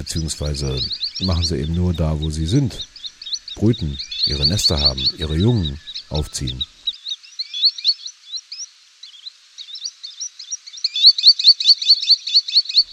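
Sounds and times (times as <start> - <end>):
speech: 0.0 - 2.9, 3.6 - 6.7
green sandpiper twittering: 0.0 - 12.9.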